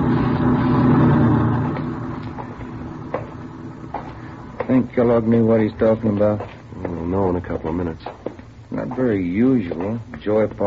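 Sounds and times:
truck driving past: 0.0s - 6.0s
speech: 4.8s - 10.6s.

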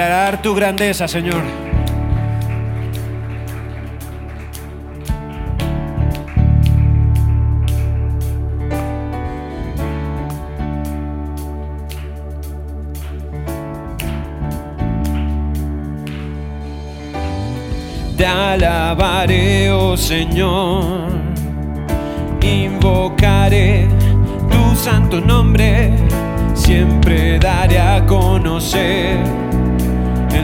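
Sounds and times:
speech: 0.0s - 1.7s, 18.2s - 21.2s, 22.4s - 24.0s, 24.8s - 29.7s
audience clapping: 0.0s - 19.4s
sustained organ-like chords: 0.0s - 30.4s.

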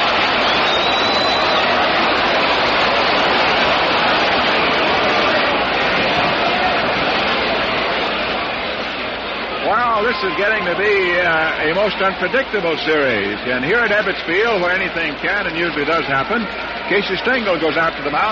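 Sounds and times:
baseball stadium crowd roaring: 0.0s - 18.2s
speech: 10.2s - 18.2s.

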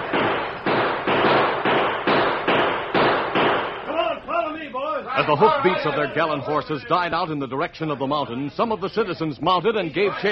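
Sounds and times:
volley of gunshots: 0.0s - 4.1s
voices crying out: 3.9s - 8.0s
speech: 5.2s - 10.3s.

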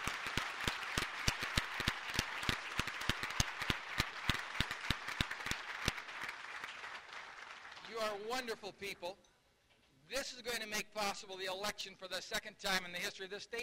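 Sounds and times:
audience applause: 0.0s - 8.7s
speech: 8.3s - 9.3s, 10.1s - 13.6s.

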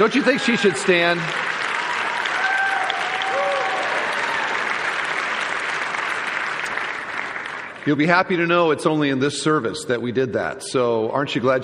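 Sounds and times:
speech: 0.0s - 1.5s, 7.9s - 11.6s
audience applause: 0.0s - 8.0s.

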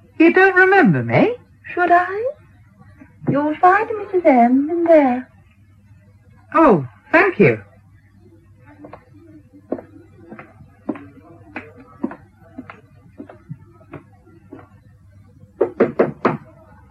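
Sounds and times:
low hum: 0.0s - 16.9s
speech: 0.2s - 2.4s, 3.3s - 5.3s, 6.5s - 7.7s
knocking on a door: 15.6s - 16.5s.

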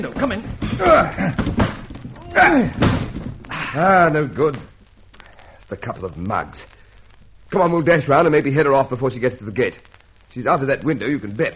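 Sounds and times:
speech: 0.0s - 1.7s, 2.3s - 3.0s, 3.7s - 4.7s, 5.7s - 6.8s, 7.5s - 11.5s
door being smashed in: 0.2s - 3.5s.

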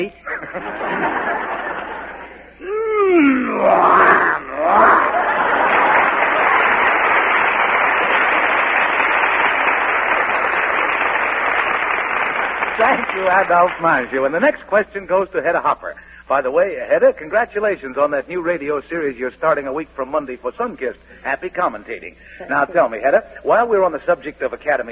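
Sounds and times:
speech: 0.0s - 0.7s, 13.3s - 24.9s
crowd laughing: 0.2s - 2.6s, 4.4s - 8.7s
person growling like a lion: 2.6s - 5.3s
crowd applause: 4.5s - 14.1s.

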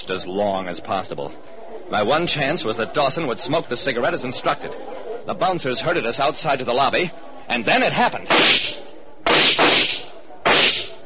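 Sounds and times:
speech: 0.0s - 8.8s
gunshots fired at the ceiling in a lobby: 8.3s - 10.9s.

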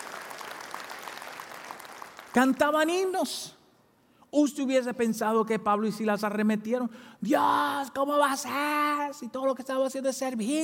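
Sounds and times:
audience applause: 0.0s - 2.3s
speech: 2.3s - 3.6s, 4.3s - 10.6s.

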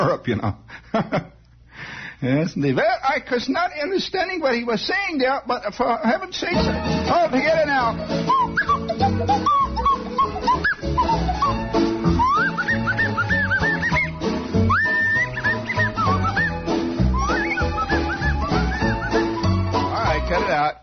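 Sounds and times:
speech: 0.0s - 1.4s, 2.2s - 9.7s
busy rhythmic background: 6.5s - 20.7s
whistling blown out through the nose: 8.2s - 19.7s.

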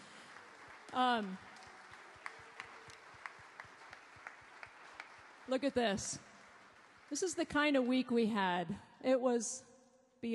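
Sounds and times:
audience clapping: 0.0s - 7.9s
speech: 0.9s - 1.5s, 5.5s - 6.3s, 7.1s - 10.3s.

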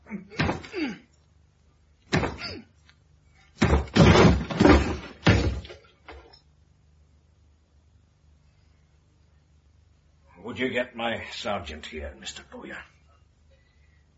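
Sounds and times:
locked door being forced and broken open with heavy thuds: 3.6s - 6.2s
speech: 10.6s - 13.0s.

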